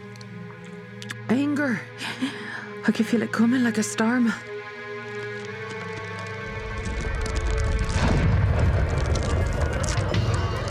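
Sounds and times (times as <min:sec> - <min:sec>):
speech: 0:01.3 - 0:04.5
heavy rumble and grinding: 0:05.3 - 0:10.6
ship crashing into a dock: 0:07.8 - 0:10.6.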